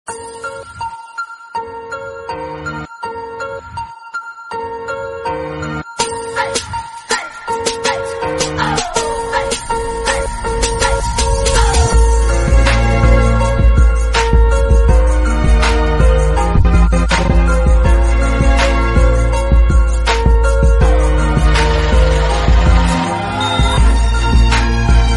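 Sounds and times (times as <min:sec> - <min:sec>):
remixed background music: 0:00.1 - 0:25.1.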